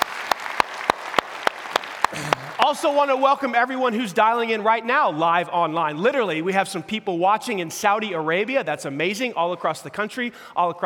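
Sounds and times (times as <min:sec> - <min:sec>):
church audience clapping for the online team and a talk: 0:00.0 - 0:03.6
speech: 0:02.1 - 0:10.8.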